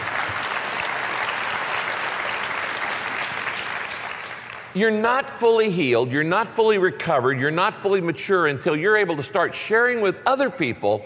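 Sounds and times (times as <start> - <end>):
crowd applauding: 0.0 - 4.8
speech: 4.7 - 11.0.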